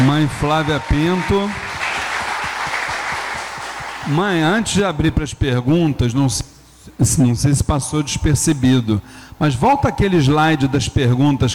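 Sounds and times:
audience applause: 0.0 - 4.2
speech: 0.2 - 1.6, 4.0 - 11.5.

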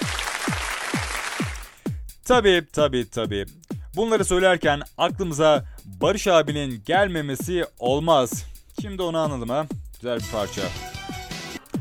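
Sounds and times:
applause: 0.0 - 1.8
speech: 2.3 - 10.9.

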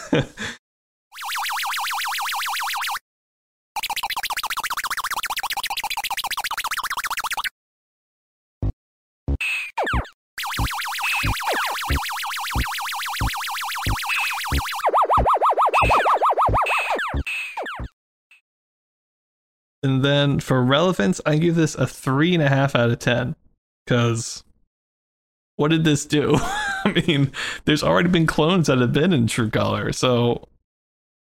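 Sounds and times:
speech: 0.1 - 0.6, 19.8 - 24.5, 25.6 - 30.5
1979 Superman video game electronic sound effects: 1.2 - 3.0, 3.8 - 7.5, 8.6 - 18.0.

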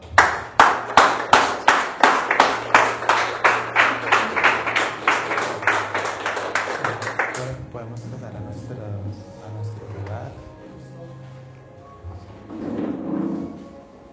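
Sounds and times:
audience applauding: 0.0 - 7.6.

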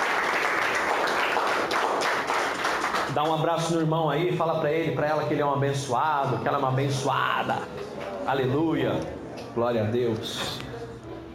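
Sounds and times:
crowd applauding: 0.0 - 3.6
speech: 3.2 - 10.7.

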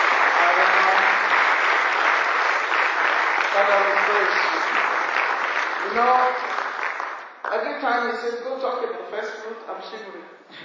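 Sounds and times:
audience clapping: 0.0 - 7.9
speech: 3.6 - 4.9, 5.8 - 6.5, 7.6 - 10.6.

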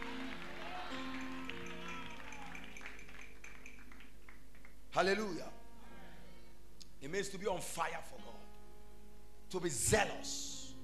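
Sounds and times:
audience clapping hands: 0.0 - 4.9
audience shouting: 0.2 - 2.6
speech: 5.0 - 5.6, 7.0 - 8.5, 9.5 - 10.5.

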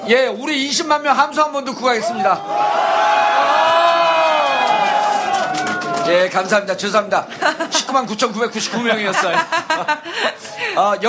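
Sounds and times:
speech: 0.0 - 3.5, 6.1 - 11.0
huge crowd cheering and roaring: 2.0 - 6.4
laughter: 7.2 - 11.0.

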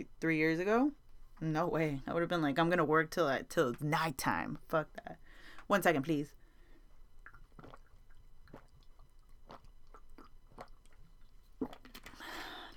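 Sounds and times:
speech: 0.0 - 6.4
person sipping and swallowing a drink: 7.2 - 12.7.

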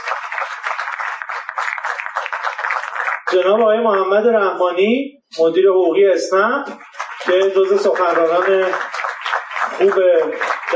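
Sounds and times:
crowd applauding: 0.0 - 3.9, 6.7 - 10.7
speech: 3.3 - 8.9, 9.7 - 10.7.

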